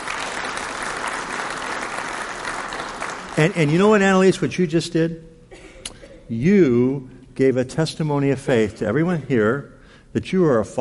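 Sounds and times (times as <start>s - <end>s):
audience applause: 0.0s - 4.1s
speech: 3.4s - 5.3s, 6.3s - 10.8s.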